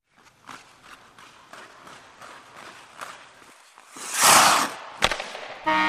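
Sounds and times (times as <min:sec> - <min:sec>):
hockey skate blade skating up: 0:00.1 - 0:05.7.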